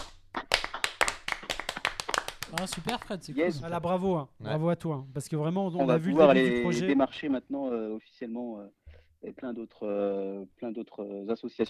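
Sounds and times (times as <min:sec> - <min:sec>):
small group applauding: 0:00.0 - 0:03.4
speech: 0:02.5 - 0:11.6.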